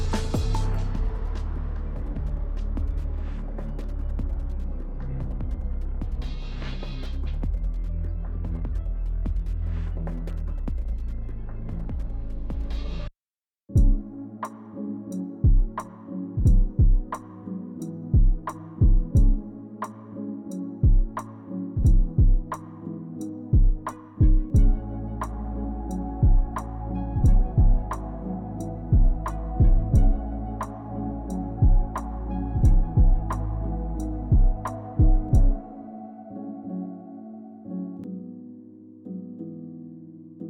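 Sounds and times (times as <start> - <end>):
music beat: 0.0 - 9.7, 13.7 - 35.7.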